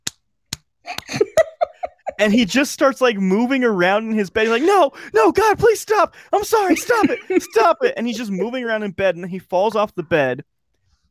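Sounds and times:
person vocally imitating wet slapping flesh sounds: 0:00.0 - 0:01.3
laughter: 0:00.9 - 0:08.8
speech: 0:02.2 - 0:10.5.

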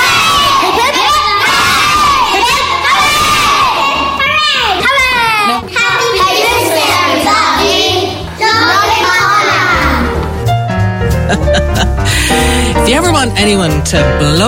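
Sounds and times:
crowd of children shouting three cheers: 0:00.0 - 0:10.1
laughter: 0:11.1 - 0:12.8
speech: 0:13.4 - 0:14.4.

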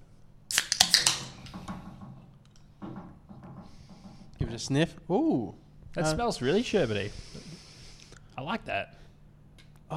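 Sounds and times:
beer can being cracked open: 0:00.5 - 0:01.4
speech: 0:04.6 - 0:07.4, 0:08.4 - 0:09.0.

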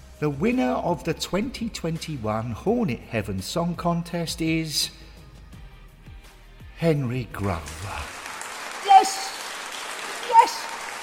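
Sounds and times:
speech: 0:00.2 - 0:05.0, 0:06.8 - 0:08.2
audience clapping: 0:07.4 - 0:11.0.

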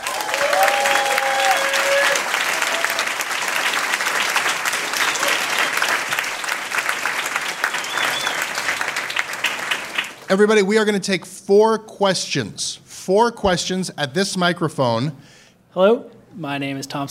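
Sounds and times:
audience applause for panelists: 0:00.0 - 0:10.3
speech: 0:10.3 - 0:17.1.

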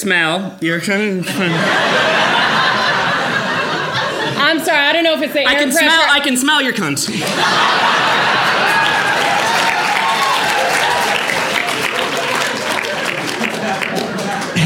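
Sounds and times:
speech: 0:00.0 - 0:02.4, 0:04.5 - 0:08.7
laughter: 0:01.3 - 0:05.9, 0:07.0 - 0:14.6
applause: 0:08.1 - 0:14.6.

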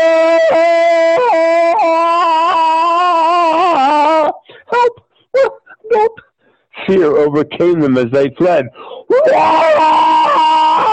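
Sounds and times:
horrifying infernal howl: 0:00.0 - 0:04.4, 0:09.1 - 0:10.9
speech: 0:06.9 - 0:10.1.

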